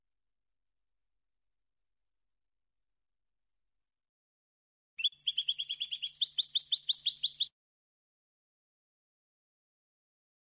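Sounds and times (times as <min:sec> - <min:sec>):
European goldfinch song: 0:05.0 - 0:07.5.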